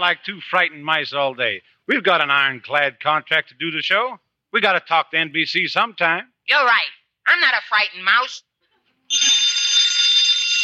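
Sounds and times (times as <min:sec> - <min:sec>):
speech: 0:00.0 - 0:08.5
telephone ringing with a shrill electric bell tone: 0:09.1 - 0:10.6.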